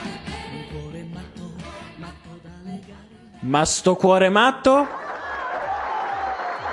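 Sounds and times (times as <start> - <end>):
speech: 3.5 - 5.0
applause in the song's background: 4.9 - 6.7.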